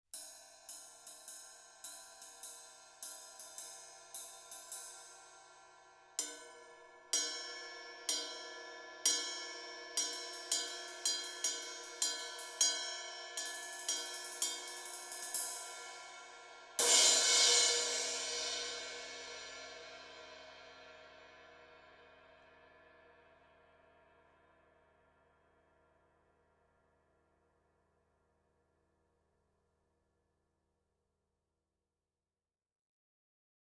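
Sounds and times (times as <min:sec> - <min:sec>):
ride cymbal: 0:00.2 - 0:20.2.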